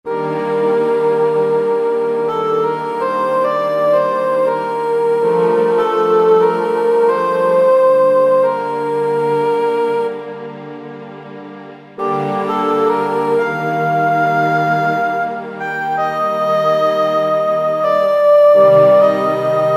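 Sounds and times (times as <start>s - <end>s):
orchestral dialog underscore music on a Kurzweil K2000: 0.2s - 19.7s.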